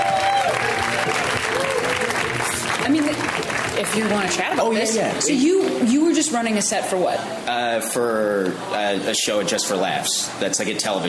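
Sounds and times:
audience applauding a comedian at a comedy show: 0.0 - 5.1
speech: 3.9 - 11.0.

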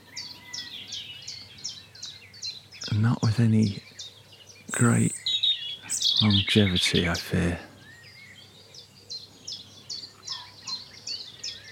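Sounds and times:
nightingales singing at dawn in Dorset: 0.0 - 11.6
speech: 3.0 - 3.9, 4.8 - 5.2, 6.2 - 7.7.

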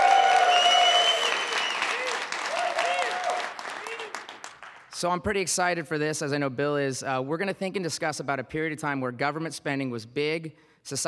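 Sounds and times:
faint tonal whistles or cheers: 0.0 - 4.3
audience applause: 0.0 - 5.0
speech: 5.0 - 11.0.

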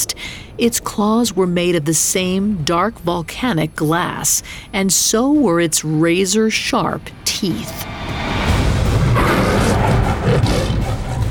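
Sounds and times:
speech: 0.6 - 8.4
jaguar roaring: 8.4 - 11.2.

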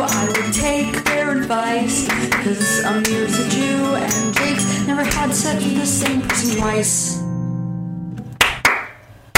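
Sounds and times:
clapping: 0.1 - 1.2, 2.1 - 2.5, 6.1 - 6.6, 8.4 - 9.3
speech: 1.5 - 7.3.

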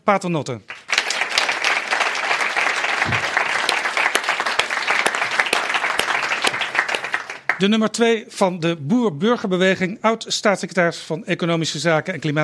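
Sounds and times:
speech: 0.0 - 0.7, 7.6 - 12.4
audience applause: 0.7 - 7.6.

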